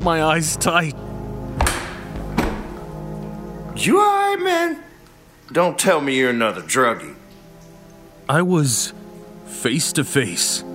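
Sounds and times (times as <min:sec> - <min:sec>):
speech: 0:00.0 - 0:01.1, 0:03.8 - 0:04.9, 0:05.5 - 0:07.2, 0:08.3 - 0:09.0, 0:09.6 - 0:10.7
door being yanked and rattled on hinges: 0:01.6 - 0:02.8.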